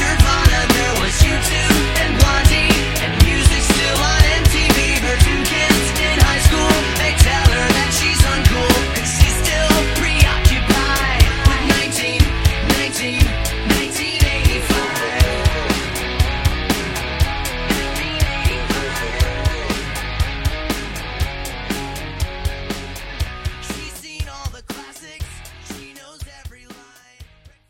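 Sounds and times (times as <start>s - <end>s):
rock drum beat: 0.0s - 27.6s.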